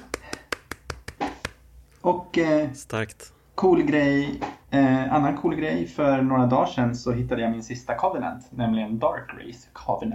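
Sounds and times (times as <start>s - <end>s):
brief small applause of light hand claps: 0.0s - 1.6s
speech: 2.1s - 10.1s.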